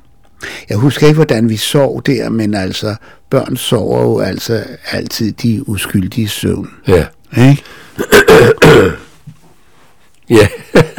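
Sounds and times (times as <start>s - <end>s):
speech: 0.7s - 9.0s, 10.3s - 10.8s
person with a spring cough coughing: 8.0s - 9.2s
throat clearing: 8.0s - 9.2s.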